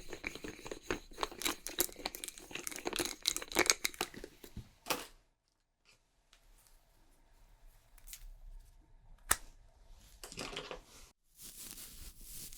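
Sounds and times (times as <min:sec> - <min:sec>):
makeup crinkling tapping and scratching: 0:00.0 - 0:05.1, 0:10.2 - 0:11.0.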